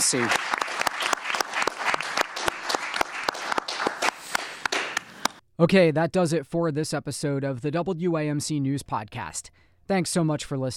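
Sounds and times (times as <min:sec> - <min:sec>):
speech: 0:00.0 - 0:00.6, 0:05.6 - 0:10.7
audience applause for candidates: 0:00.0 - 0:05.4.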